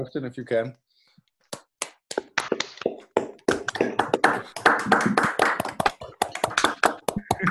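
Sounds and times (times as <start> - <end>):
people clapping over video call: 1.6 - 7.4.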